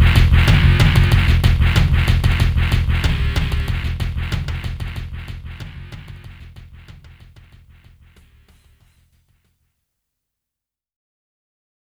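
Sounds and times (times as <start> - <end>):
samba music: 0.0 - 8.4.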